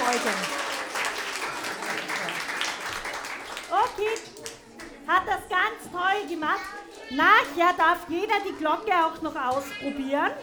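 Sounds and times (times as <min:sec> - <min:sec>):
audience applause for a child's bow: 0:00.0 - 0:04.6
speech: 0:00.1 - 0:00.6, 0:05.1 - 0:10.4.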